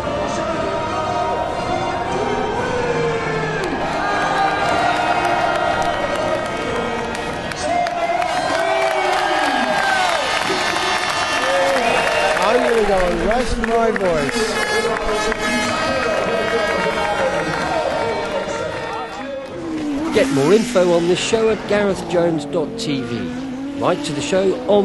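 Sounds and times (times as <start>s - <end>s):
crowd cheering during pit lane invasion: 0.2s - 22.3s
scattered clapping: 4.6s - 19.6s
speech: 13.3s - 14.6s, 20.2s - 24.8s.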